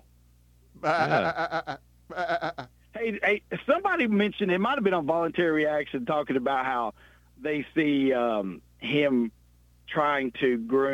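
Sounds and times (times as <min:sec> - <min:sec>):
speech: 0:00.8 - 0:02.4, 0:03.0 - 0:10.9
sheep-like bleat: 0:00.8 - 0:02.7.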